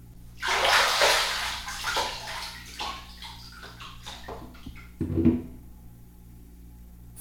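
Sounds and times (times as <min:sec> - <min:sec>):
bath water splashing and sloshing: 0:00.4 - 0:04.9
speech: 0:05.2 - 0:05.5.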